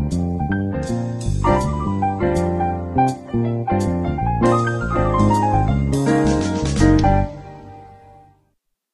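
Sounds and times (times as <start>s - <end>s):
soundtrack music: 0.8s - 8.0s.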